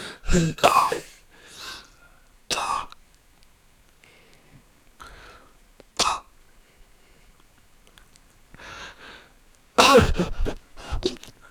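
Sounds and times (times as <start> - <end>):
young man in pain: 0.3 - 1.1, 9.8 - 11.3.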